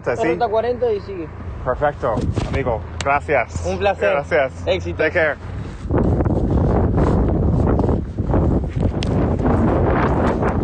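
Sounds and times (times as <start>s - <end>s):
speech: 0.0s - 5.5s
strong Patagonian wind along Ruta 40 buffeting the microphone: 2.0s - 2.9s, 5.2s - 10.6s.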